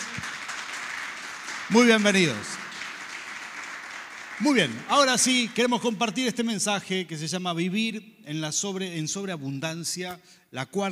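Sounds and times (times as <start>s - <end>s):
crowd applauding: 0.0s - 5.9s
speech: 1.7s - 2.6s, 4.4s - 10.9s.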